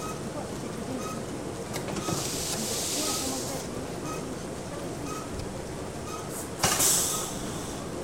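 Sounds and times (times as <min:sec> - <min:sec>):
voices in a dry cleaning plant: 0:00.2 - 0:06.0
steam press in a dry cleaning plant: 0:02.0 - 0:03.6, 0:06.3 - 0:07.9.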